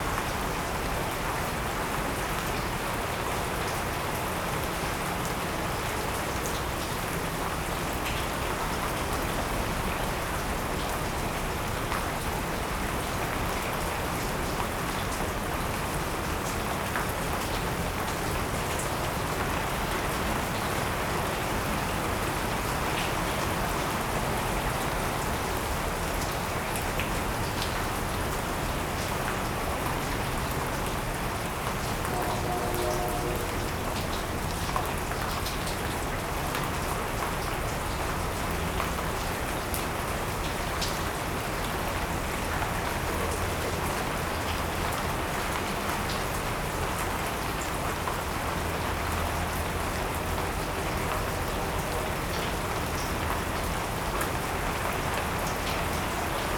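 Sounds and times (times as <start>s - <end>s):
rain on a carport in Oregon: 0.0s - 56.5s.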